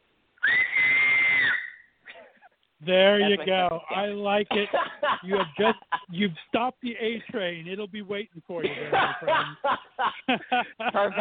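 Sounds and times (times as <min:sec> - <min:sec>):
loud two-handed finger whistle: 0:00.4 - 0:02.0
speech: 0:02.8 - 0:11.1
laughter: 0:04.4 - 0:07.3, 0:08.6 - 0:11.1.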